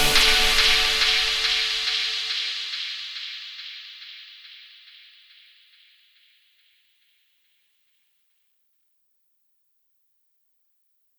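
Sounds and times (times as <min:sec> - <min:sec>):
bass-heavy music: 0:00.0 - 0:01.9.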